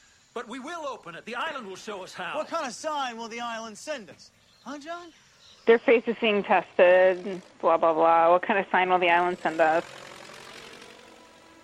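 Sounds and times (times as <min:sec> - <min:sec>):
speech: 0:00.4 - 0:10.0
airplane flying overhead: 0:05.3 - 0:11.6.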